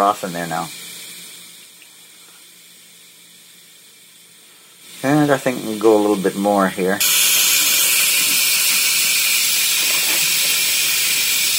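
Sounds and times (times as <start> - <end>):
speech: 0.0 - 0.8, 5.2 - 7.1
pressure cooker full of beef broth releasing steam: 0.0 - 11.5.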